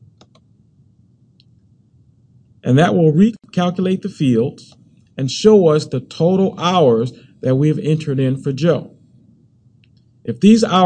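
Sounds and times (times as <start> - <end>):
quiet hum: 0.0 - 10.8
computer mouse clicking a recalculate button: 0.2 - 0.5
speech: 2.6 - 8.9, 10.3 - 10.8.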